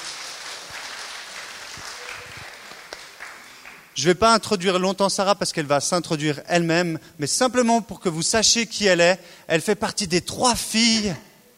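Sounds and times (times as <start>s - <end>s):
audience applause: 0.0s - 4.0s
speech: 4.0s - 11.3s.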